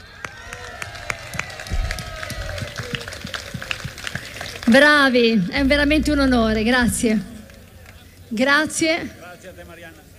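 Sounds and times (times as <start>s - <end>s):
audience applause: 0.0s - 5.6s
speech: 4.7s - 7.3s, 8.3s - 10.1s.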